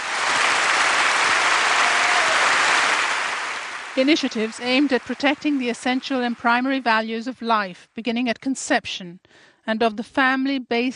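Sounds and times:
audience applause: 0.0 - 7.0
speech: 4.0 - 10.9.

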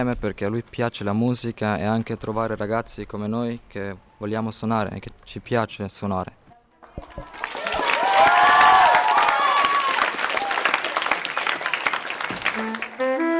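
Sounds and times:
speech: 0.0 - 6.4
audience applause: 6.9 - 13.3.

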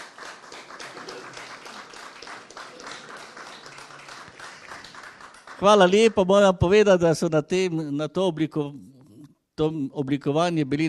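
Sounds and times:
audience applause at an exhibition event: 0.0 - 6.3
speech: 5.6 - 8.9, 9.6 - 10.8.

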